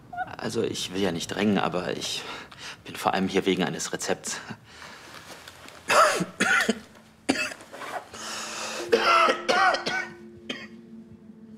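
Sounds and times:
speech: 0:00.4 - 0:04.9
coughing: 0:05.9 - 0:07.7, 0:08.8 - 0:10.8.

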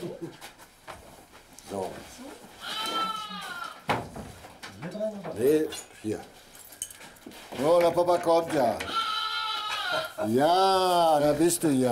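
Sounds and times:
speech: 0:00.2 - 0:00.5, 0:05.4 - 0:06.4, 0:07.6 - 0:09.0, 0:10.2 - 0:11.9
lamb bleating: 0:02.6 - 0:03.8, 0:08.8 - 0:10.2.

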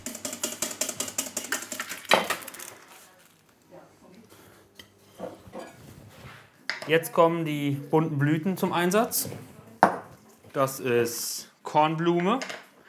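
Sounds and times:
whisking hollandaise sauce in a bowl: 0:00.0 - 0:01.8
speech: 0:06.9 - 0:09.5, 0:10.6 - 0:12.6.

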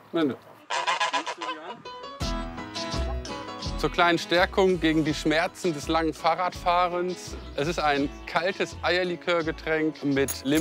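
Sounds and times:
speech: 0:00.1 - 0:00.5, 0:01.4 - 0:02.0, 0:03.8 - 0:10.5
geese cackling and honking, a gander with three females: 0:00.6 - 0:02.0.

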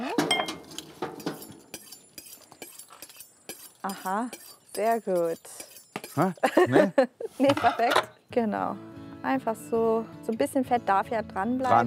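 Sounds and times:
plate being moved in a kitchen: 0:00.2 - 0:06.6
speech: 0:03.8 - 0:11.8
laughter: 0:06.3 - 0:08.0.

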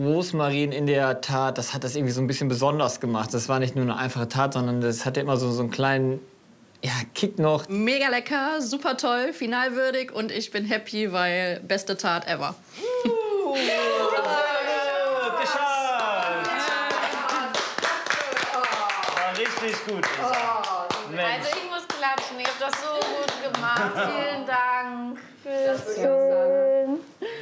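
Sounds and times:
speech: 0:00.0 - 0:13.9, 0:19.6 - 0:26.7
people laughing: 0:12.8 - 0:17.5, 0:23.5 - 0:24.4
hand clapping: 0:16.0 - 0:24.0.

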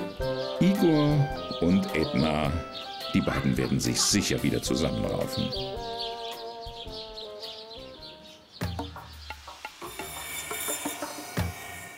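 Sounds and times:
speech: 0:00.2 - 0:06.1
zookeeper sawing meat rations for cats and wolves: 0:09.7 - 0:11.9.

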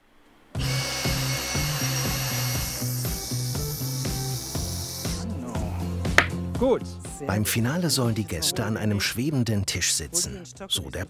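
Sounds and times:
saw cutting through wood: 0:00.6 - 0:05.3
speech: 0:06.6 - 0:11.0.

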